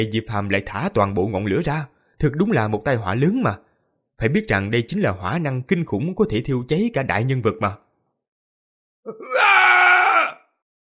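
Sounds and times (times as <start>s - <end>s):
speech: 0.0s - 7.8s, 9.0s - 9.8s
old man screaming in agony while burning: 9.1s - 10.6s.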